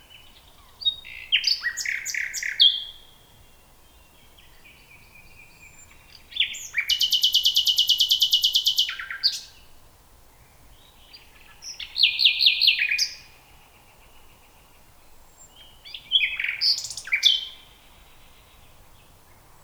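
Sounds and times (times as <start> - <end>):
common nightingale Luscinia megarhynchos: 0.0 - 3.2, 3.9 - 9.6, 10.9 - 13.2, 15.4 - 19.6.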